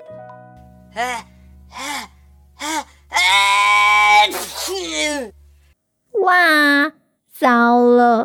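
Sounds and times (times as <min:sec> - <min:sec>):
speech: 0:01.0 - 0:03.6, 0:04.2 - 0:05.4, 0:06.2 - 0:08.2
voice imitating an elephant's big sneeze: 0:04.1 - 0:05.2.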